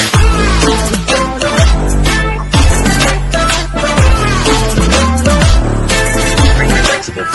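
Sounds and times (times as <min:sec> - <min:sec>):
cartoon music ringtone: 0:00.1 - 0:07.3.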